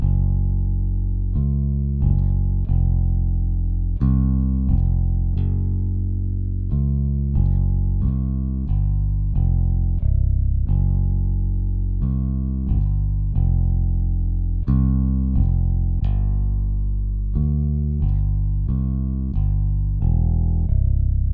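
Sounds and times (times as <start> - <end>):
bass: 0.0 - 21.3.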